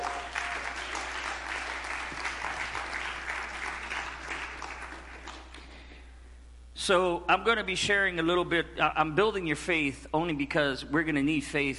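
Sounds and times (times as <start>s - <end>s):
audience hand clapping: 0.0s - 5.9s
speech: 6.9s - 11.7s.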